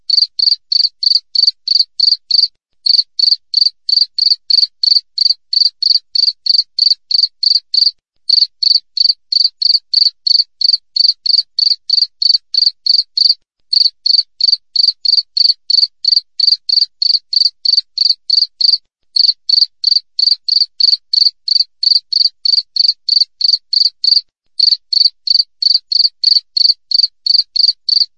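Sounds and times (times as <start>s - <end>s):
cricket chirping: 0.1s - 28.1s.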